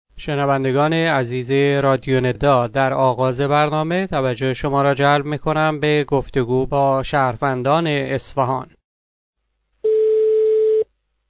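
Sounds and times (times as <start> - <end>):
speech: 0.2 - 8.8
telephone tone as a call is placed to a resident of Isfahan: 9.8 - 10.9.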